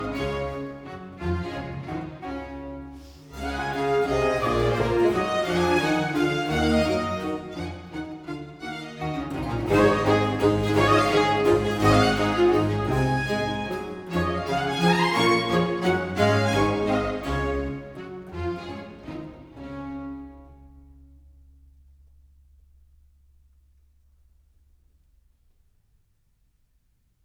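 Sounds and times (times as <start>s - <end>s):
bassoon: 0.0s - 21.2s
strings playing a sinfonia allegro: 0.0s - 21.3s.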